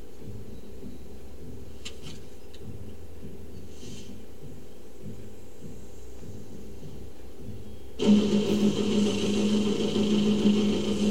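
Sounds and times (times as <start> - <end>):
drone whirring: 8.0 - 11.0.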